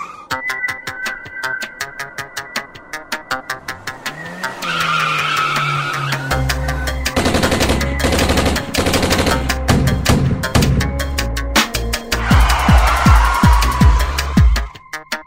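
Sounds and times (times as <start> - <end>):
rap music: 0.4 - 14.8.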